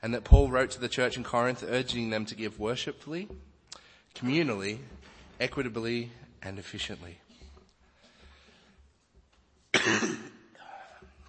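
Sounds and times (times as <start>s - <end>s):
speech: 0.0s - 3.5s, 4.2s - 7.2s
person coughing during a sermon: 9.7s - 11.0s.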